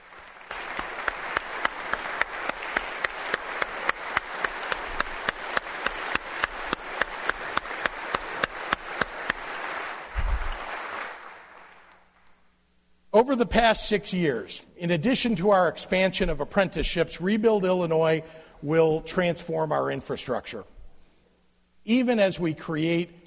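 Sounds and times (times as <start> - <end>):
audience cheering and applause: 0.0 - 12.4
speech: 13.2 - 20.7, 21.8 - 23.2.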